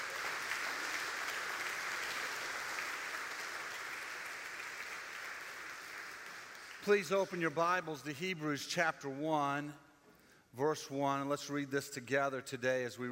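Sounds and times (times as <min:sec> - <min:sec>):
audience clapping hands: 0:00.0 - 0:07.7
speech: 0:06.8 - 0:09.8, 0:10.5 - 0:13.0.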